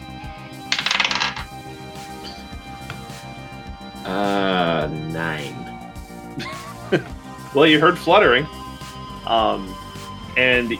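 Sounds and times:
quiet musical backdrop: 0:00.0 - 0:10.7
dice rolling on a table: 0:00.7 - 0:01.5
speech: 0:04.1 - 0:04.3, 0:06.9 - 0:08.6, 0:09.3 - 0:09.8, 0:10.4 - 0:10.7.

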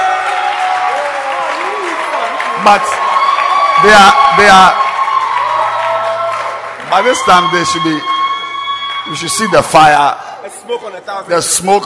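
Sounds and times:
audience clapping hands: 0:00.0 - 0:10.0
speech: 0:02.6 - 0:03.0, 0:03.8 - 0:04.8, 0:06.9 - 0:08.1, 0:09.0 - 0:11.8.

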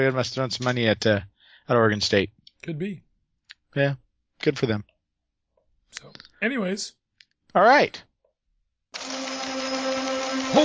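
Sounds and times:
speech: 0:00.0 - 0:03.0, 0:03.7 - 0:04.9, 0:05.9 - 0:07.0, 0:07.6 - 0:08.1, 0:08.9 - 0:09.2
teletype machine running: 0:09.0 - 0:10.6.

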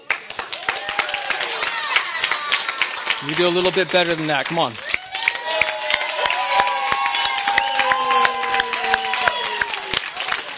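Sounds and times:
audience applause: 0:00.0 - 0:10.5
speech: 0:03.2 - 0:04.8.

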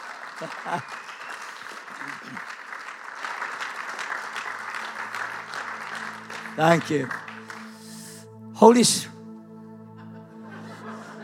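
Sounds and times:
audience clapping hands: 0:00.0 - 0:08.2
laughter: 0:00.2 - 0:01.0, 0:01.9 - 0:02.5, 0:10.0 - 0:11.2
speech: 0:00.4 - 0:01.1, 0:02.0 - 0:02.6, 0:06.6 - 0:07.2, 0:08.6 - 0:09.1.

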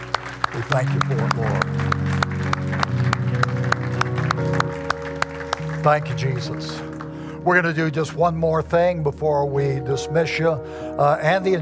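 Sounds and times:
audience clapping: 0:00.0 - 0:08.2
speech: 0:00.6 - 0:02.1, 0:05.8 - 0:11.6.

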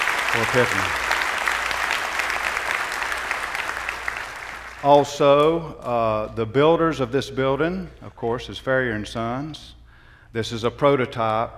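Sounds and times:
audience applause: 0:00.0 - 0:05.6
speech: 0:00.3 - 0:01.1, 0:04.8 - 0:11.5.

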